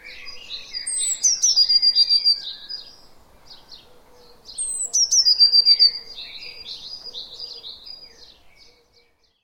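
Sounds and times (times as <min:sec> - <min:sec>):
Eurasian blue tit Cyanistes caeruleus giving high thin phrases into a rapid trill: 0:00.0 - 0:03.0, 0:04.5 - 0:08.7.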